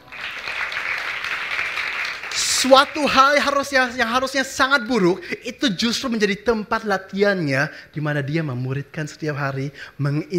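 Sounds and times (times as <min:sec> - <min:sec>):
audience applause: 0:00.0 - 0:03.6
speech: 0:02.6 - 0:10.3.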